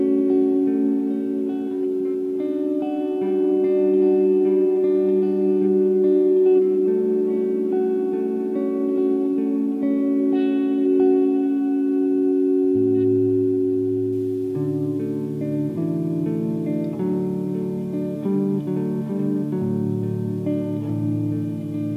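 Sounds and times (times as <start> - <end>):
guitar loop in D major: 0.0 - 21.9.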